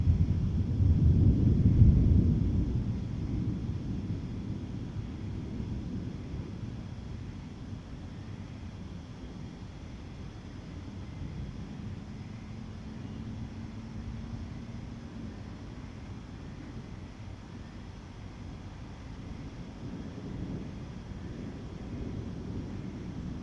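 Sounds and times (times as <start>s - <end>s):
thunder in the evening in Douala Cameroon: 0.0s - 7.2s, 19.3s - 23.4s.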